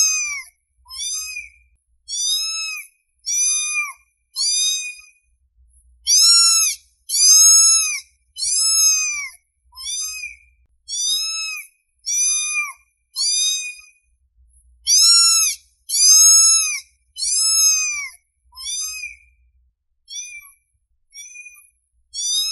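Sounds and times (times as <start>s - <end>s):
domestic cat meowing: 0.0s - 1.5s, 2.1s - 5.1s, 6.1s - 13.9s, 14.9s - 19.2s, 22.2s - 22.5s.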